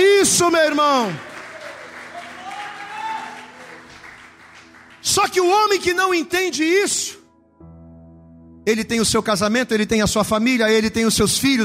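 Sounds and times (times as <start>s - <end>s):
audience applauding: 0.2s - 5.8s
speech: 0.3s - 1.3s, 5.2s - 7.2s, 8.7s - 11.6s.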